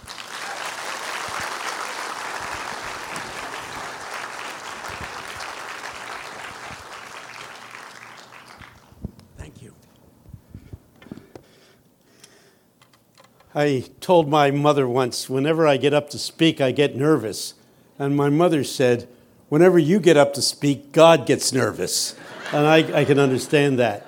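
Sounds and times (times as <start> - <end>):
Crosslands audience applause welcoming speaker Tony Campolo: 0.0 - 9.0
speech: 13.6 - 24.0
laughter: 22.1 - 24.0.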